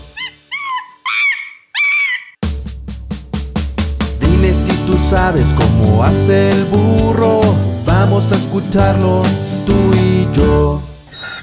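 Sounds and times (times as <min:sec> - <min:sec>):
monkey call: 0:00.0 - 0:02.4
speech: 0:04.4 - 0:10.9.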